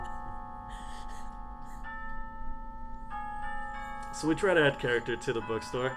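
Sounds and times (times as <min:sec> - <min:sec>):
grandfather clock chiming: 0:00.0 - 0:05.9
speech: 0:04.2 - 0:05.9.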